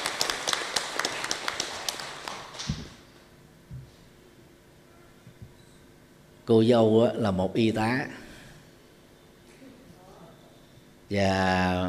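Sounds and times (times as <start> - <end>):
audience applause at a wedding ceremony: 0.0 - 2.7
speech: 6.5 - 8.2, 11.1 - 11.8.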